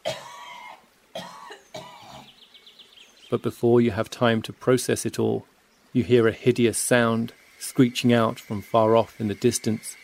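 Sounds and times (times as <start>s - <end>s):
person retching violently: 0.0s - 2.3s
speech: 3.3s - 10.0s.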